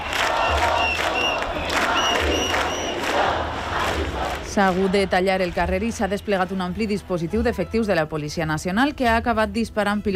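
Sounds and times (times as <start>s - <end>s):
whistles: 0.0s - 3.1s
protest crowd chanting at demonstration: 0.0s - 6.2s
speech: 4.6s - 10.1s.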